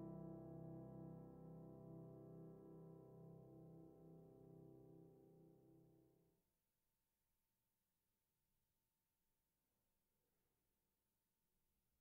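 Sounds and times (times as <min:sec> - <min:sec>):
solo piano: 0:00.0 - 0:05.9.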